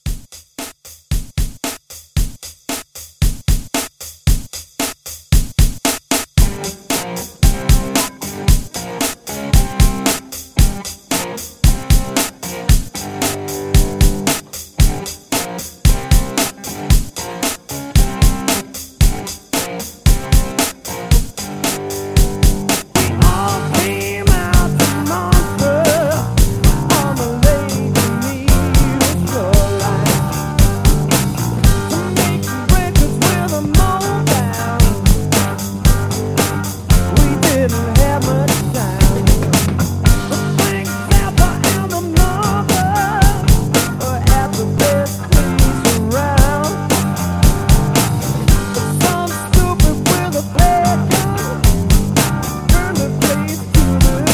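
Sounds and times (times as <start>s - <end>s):
70s classic rock drums: 0.0s - 54.3s.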